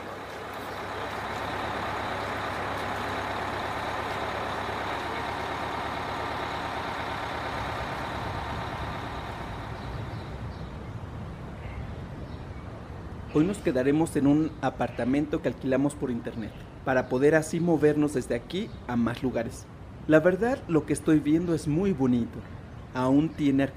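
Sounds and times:
city bus with air brakes droning, heading to the city centre in southern Spain: 0.0s - 13.5s
speech: 13.4s - 23.7s.

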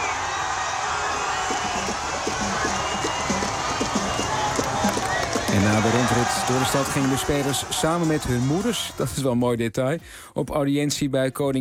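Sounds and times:
thousands of people cheering: 0.0s - 9.2s
speech: 5.6s - 11.5s.

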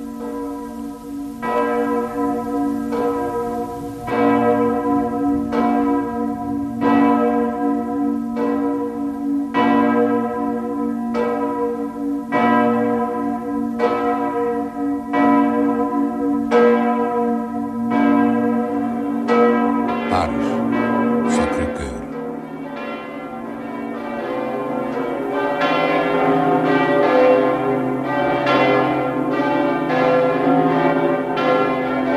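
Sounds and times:
church bells of St. Paul's church in Antwerp ringing to mark a birth: 0.0s - 32.1s.

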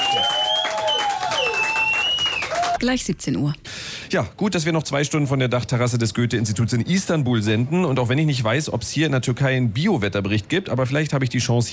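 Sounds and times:
audience applauding on the roof terrace of the Goethe-Institut in Istanbul: 0.0s - 2.9s
speech: 2.8s - 11.7s.

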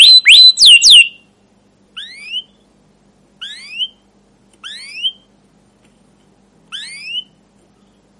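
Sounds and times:
caged domestic canary singing rolling trills: 0.0s - 2.8s, 3.4s - 5.4s, 6.7s - 8.1s.

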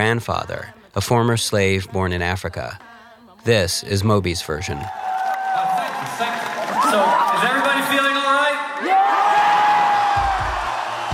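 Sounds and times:
speech: 0.0s - 5.1s, 6.9s - 8.2s
concert audience cheering and whooping: 4.8s - 8.1s, 8.8s - 11.1s.

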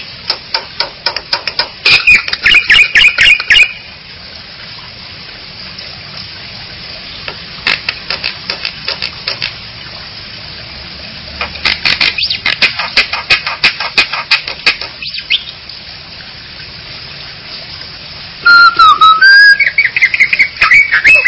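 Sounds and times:
Bali myna squawking calls: 1.8s - 3.8s, 11.6s - 15.6s, 18.4s - 21.2s.

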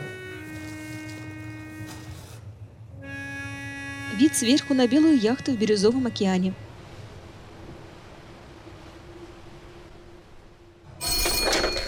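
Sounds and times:
speech: 4.2s - 6.6s
telephone ringing with rattling bell: 11.0s - 11.8s.

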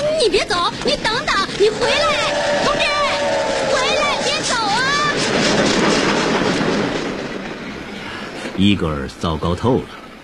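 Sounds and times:
clickety-clack of train: 0.0s - 10.2s
speech: 0.2s - 3.0s, 8.6s - 10.0s
train pulling away: 1.1s - 8.6s.

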